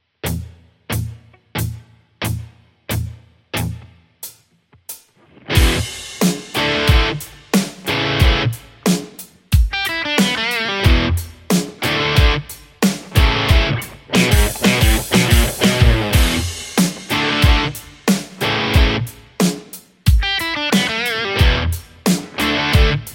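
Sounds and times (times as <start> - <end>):
Stratocaster electric guitar: 5.2 - 8.9, 9.7 - 19.4, 20.2 - 23.1.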